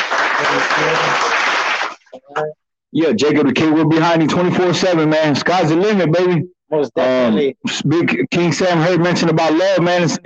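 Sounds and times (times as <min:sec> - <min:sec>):
burst of applause: 0:00.0 - 0:02.1
speech: 0:02.4 - 0:10.2.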